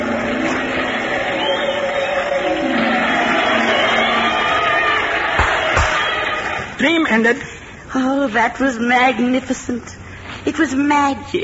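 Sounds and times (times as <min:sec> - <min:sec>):
crowd cheering: 0:00.0 - 0:06.9
speech: 0:06.8 - 0:11.4.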